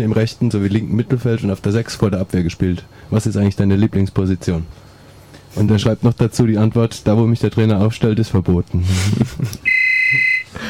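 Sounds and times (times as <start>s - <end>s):
speech: 0.0s - 4.9s, 5.5s - 10.2s
telephone ringing: 9.7s - 10.5s.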